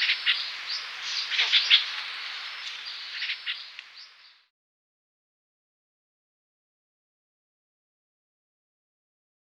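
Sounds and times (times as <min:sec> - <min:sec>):
Streak-eared bulbul rasping chattery calls: 0:00.0 - 0:04.4.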